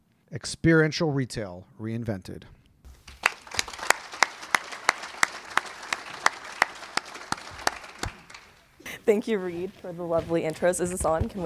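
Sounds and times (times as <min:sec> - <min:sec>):
speech: 0:00.3 - 0:02.6, 0:09.1 - 0:11.4
audience applause at breakfast event: 0:03.0 - 0:08.7.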